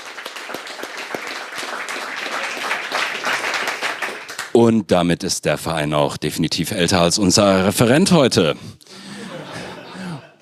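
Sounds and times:
audience applause: 0:00.0 - 0:04.5
speech: 0:04.6 - 0:09.0
laughter: 0:09.0 - 0:10.3.

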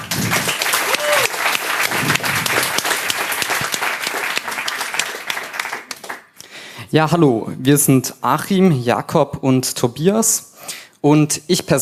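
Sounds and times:
roaring applause from audience: 0:00.0 - 0:06.3
speech: 0:06.9 - 0:11.7.

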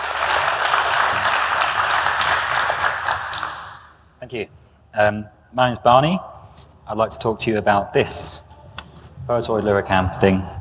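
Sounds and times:
audience clapping at a talk event to welcome a speaker: 0:00.0 - 0:03.9
speech: 0:04.3 - 0:06.3, 0:06.9 - 0:08.4, 0:09.3 - 0:10.6.

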